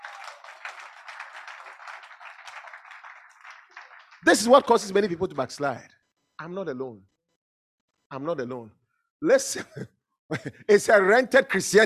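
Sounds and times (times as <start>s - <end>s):
audience clapping hands: 0.0s - 5.2s
speech: 4.2s - 7.1s, 8.1s - 11.8s.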